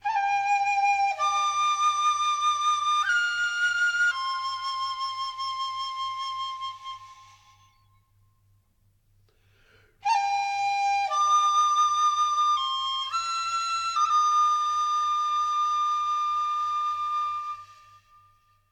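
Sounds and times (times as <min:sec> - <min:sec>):
grasslands flute: 0:00.0 - 0:08.4, 0:09.8 - 0:18.7.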